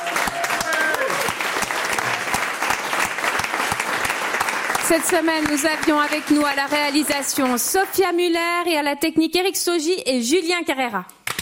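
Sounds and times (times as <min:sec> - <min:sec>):
audience applause: 0:00.0 - 0:08.2
speech: 0:04.9 - 0:11.2.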